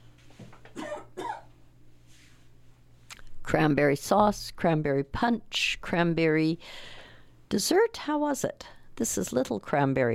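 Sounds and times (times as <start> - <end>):
person clearing throat and coughing: 0.7 - 1.5
speech: 3.5 - 10.1.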